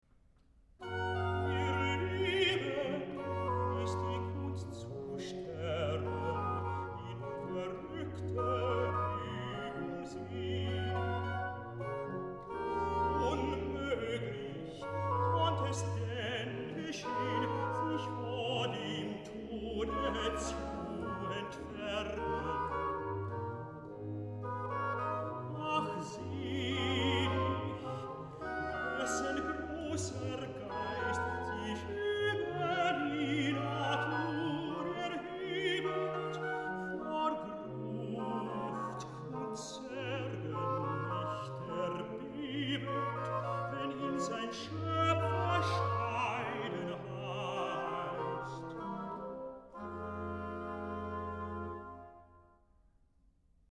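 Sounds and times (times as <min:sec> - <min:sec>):
tenor singing recitative: 0:00.8 - 0:52.0.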